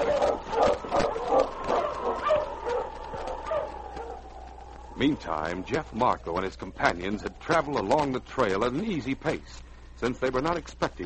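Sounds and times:
husky barking excitedly: 0.0 - 5.0
husky whining: 0.0 - 5.0
speech: 5.0 - 11.0.

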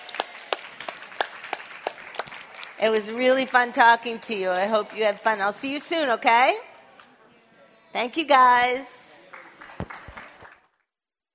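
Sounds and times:
slow handclaps from an audience at a talk: 0.0 - 3.1, 9.3 - 10.8
speech: 2.8 - 6.7, 7.9 - 9.0.

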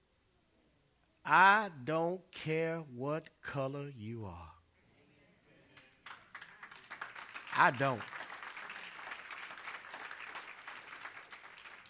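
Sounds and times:
speech: 1.2 - 4.6, 7.6 - 8.2
audience clapping: 5.8 - 11.8.

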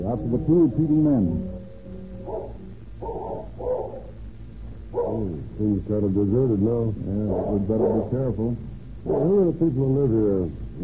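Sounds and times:
speech: 0.0 - 1.6, 5.0 - 10.8
cur dog barking fiercely: 2.2 - 4.2, 4.9 - 5.3, 7.3 - 8.2, 9.0 - 9.4.

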